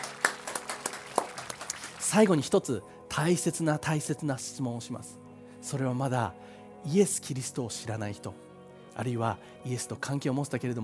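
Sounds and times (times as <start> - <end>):
church audience applause: 0.0 - 2.2
speech: 2.1 - 10.8.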